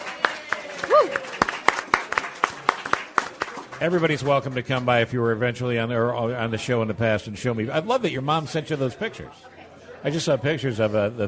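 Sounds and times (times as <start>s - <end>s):
studio audience clapping: 0.0s - 5.1s
speech: 0.9s - 1.5s, 3.8s - 11.2s.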